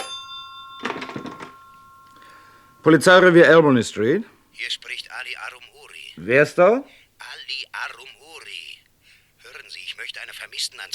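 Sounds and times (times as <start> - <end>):
old telephone bell ringing in a London police station: 0.0 - 4.6
speech: 2.8 - 7.0, 10.0 - 10.9.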